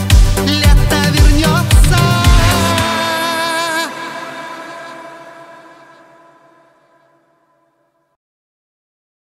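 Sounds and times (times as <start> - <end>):
euro dance italo disco music: 0.0 - 5.4.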